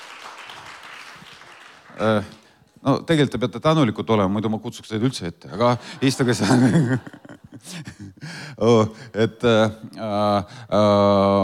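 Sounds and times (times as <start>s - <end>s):
church congregation clapping to welcome newcomers: 0.0s - 2.5s
speech: 2.0s - 11.4s
laughter: 5.7s - 8.1s.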